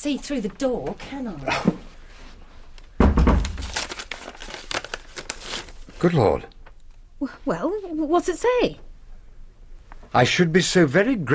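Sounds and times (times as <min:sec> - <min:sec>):
speech: 0:00.0 - 0:02.0, 0:06.0 - 0:06.6, 0:07.2 - 0:08.8, 0:10.1 - 0:11.3
soft thump: 0:03.0 - 0:03.6
folded paper note crinkling as it is opened out: 0:03.4 - 0:06.1.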